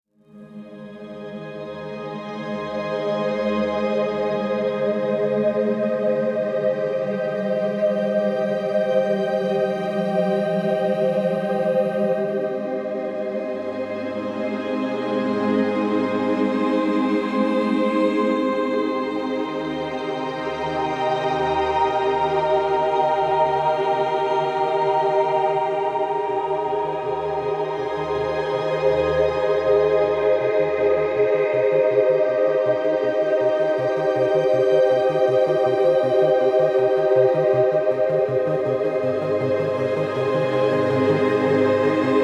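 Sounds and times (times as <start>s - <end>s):
dreamy ambient music: 0.3s - 42.2s.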